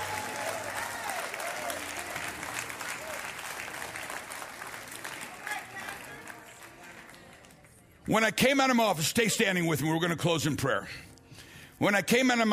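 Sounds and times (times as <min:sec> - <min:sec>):
audience clapping: 0:00.0 - 0:07.8
speech: 0:08.1 - 0:11.1, 0:11.8 - 0:12.5.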